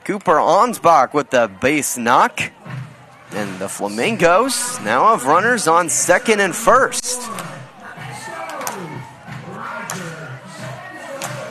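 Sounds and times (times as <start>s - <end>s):
speech: 0.0s - 7.5s
team clapping along in the Flamingo dugouts: 4.2s - 11.4s.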